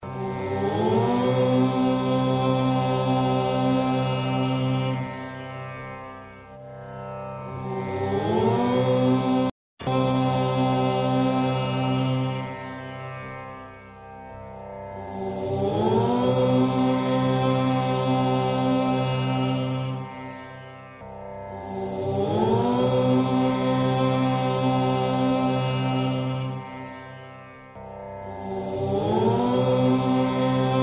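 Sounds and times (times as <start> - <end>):
Om chanting: 0.2 - 5.1, 7.7 - 12.5, 15.2 - 20.0, 21.7 - 26.6, 28.3 - 30.8.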